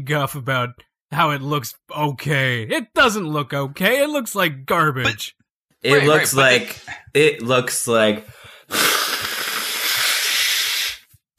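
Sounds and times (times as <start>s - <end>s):
speech: 0.0s - 9.0s
person blowing nose: 8.4s - 11.2s.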